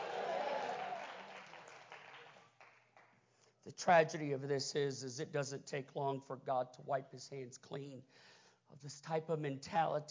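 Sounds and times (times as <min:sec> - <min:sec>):
audience clapping hands: 0:00.0 - 0:03.2
speech: 0:03.6 - 0:10.1.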